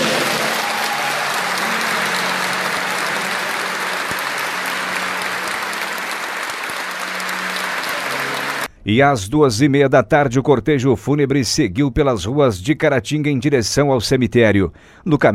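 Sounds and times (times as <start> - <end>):
crowd applause: 0.0 - 8.7
speech: 8.9 - 15.3.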